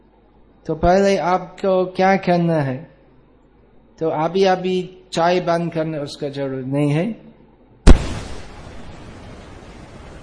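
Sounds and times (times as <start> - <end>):
speech: 0.7 - 2.9, 4.0 - 7.3
firecracker bursting: 7.9 - 10.2.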